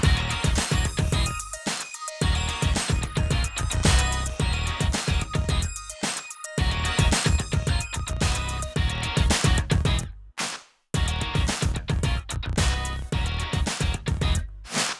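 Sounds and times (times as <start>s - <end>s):
music: 0.0s - 10.1s, 11.0s - 14.5s.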